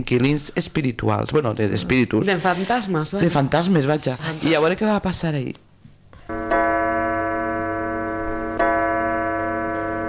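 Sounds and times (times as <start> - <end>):
speech: 0.0 - 5.6
clock striking the hour: 6.3 - 10.0.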